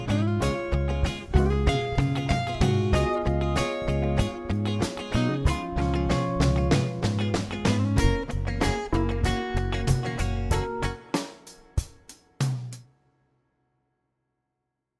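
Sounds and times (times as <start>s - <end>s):
Db7 diminished dominant jazz pattern: 0.0s - 11.3s.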